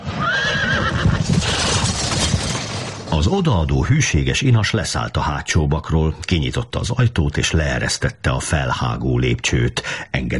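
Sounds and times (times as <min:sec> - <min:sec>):
horse neighing: 0:00.0 - 0:01.9
horse-drawn carriage wheels rumbling: 0:00.4 - 0:03.4
speech: 0:03.2 - 0:10.3.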